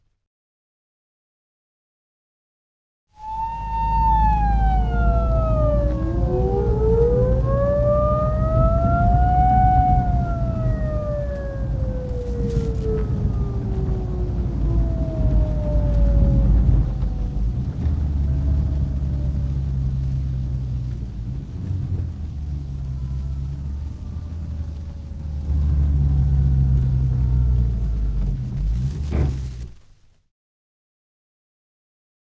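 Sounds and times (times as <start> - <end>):
siren: 3.2 - 28.7.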